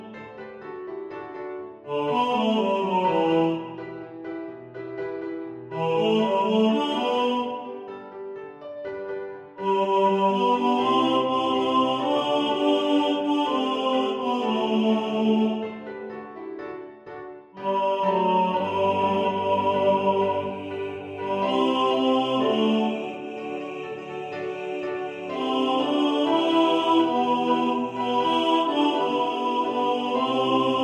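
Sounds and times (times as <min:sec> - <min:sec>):
piano: 0:00.0 - 0:30.8
tenor singing in the foreground: 0:01.9 - 0:04.3, 0:05.7 - 0:08.1, 0:09.6 - 0:16.1, 0:17.6 - 0:30.8.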